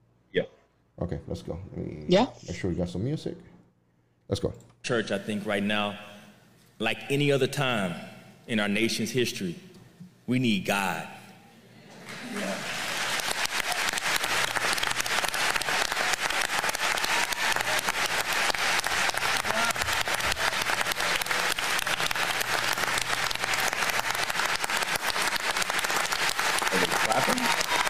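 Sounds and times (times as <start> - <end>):
speech: 0.3 - 3.5, 4.3 - 6.1, 6.8 - 9.7, 10.3 - 11.2
audience clapping: 12.0 - 27.8.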